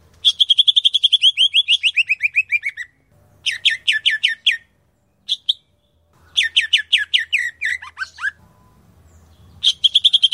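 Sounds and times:
grey-cheeked bulbul song: 0:00.1 - 0:10.3.

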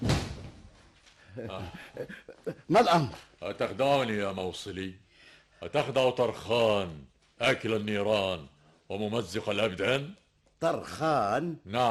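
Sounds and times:
house door slamming: 0:00.0 - 0:00.6
laughter: 0:01.4 - 0:03.1
speech: 0:01.4 - 0:11.9.

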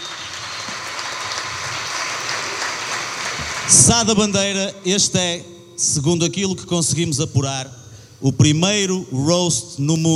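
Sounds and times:
audience applauding at a comedy roast: 0:00.0 - 0:04.0
speech: 0:03.7 - 0:10.1.

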